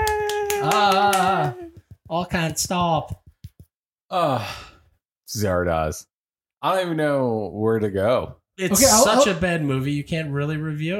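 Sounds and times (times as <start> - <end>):
soft golf clap: 0.0 - 3.7
speech: 0.6 - 3.2, 4.1 - 4.7, 5.3 - 10.9.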